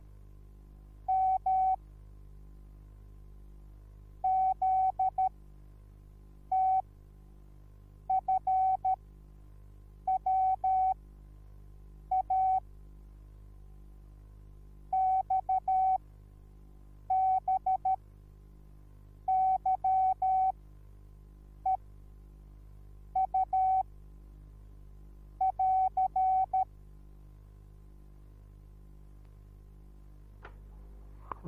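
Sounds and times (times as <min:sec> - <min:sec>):
morse code beeps: 0:01.1 - 0:01.8, 0:04.2 - 0:05.3, 0:06.5 - 0:06.8, 0:08.1 - 0:09.0, 0:10.1 - 0:11.0, 0:12.1 - 0:12.6, 0:15.0 - 0:16.0, 0:17.1 - 0:18.0, 0:19.3 - 0:20.5, 0:23.2 - 0:23.8, 0:25.4 - 0:26.7.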